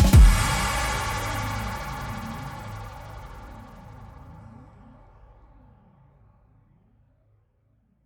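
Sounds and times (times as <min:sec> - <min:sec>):
drum and bass remix: 0:00.0 - 0:03.8.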